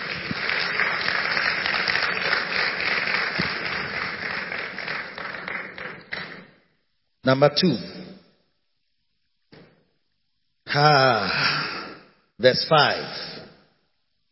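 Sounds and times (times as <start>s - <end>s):
audience clapping: 0.0s - 6.8s
speech: 7.3s - 7.9s, 10.8s - 11.4s, 12.4s - 13.3s.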